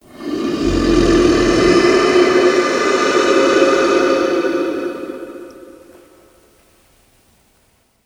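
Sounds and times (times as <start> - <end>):
long dragon breathing: 0.0 - 6.1.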